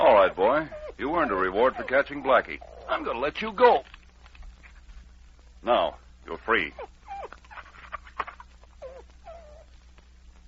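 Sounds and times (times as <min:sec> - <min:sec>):
wolf-dog giving wavering whimpering calls: 0:00.0 - 0:03.2, 0:06.7 - 0:07.8, 0:08.8 - 0:09.8
speech: 0:00.3 - 0:04.0, 0:05.6 - 0:07.0.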